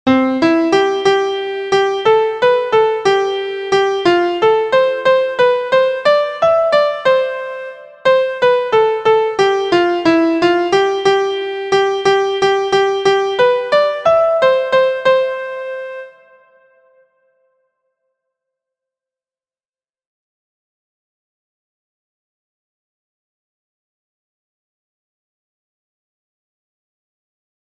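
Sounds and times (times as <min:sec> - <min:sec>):
MIDI music: 0:00.1 - 0:16.7.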